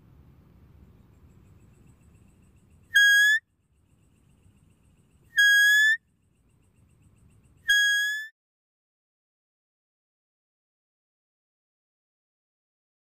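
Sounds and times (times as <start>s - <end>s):
deer whistling: 2.9s - 3.4s, 5.3s - 6.0s, 7.6s - 8.3s.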